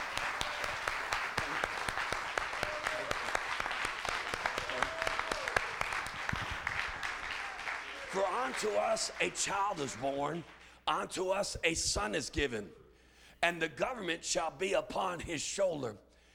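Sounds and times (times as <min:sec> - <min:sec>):
crowd clapping hands in praise: 0:00.0 - 0:10.7
speech: 0:08.5 - 0:12.8, 0:13.4 - 0:16.0.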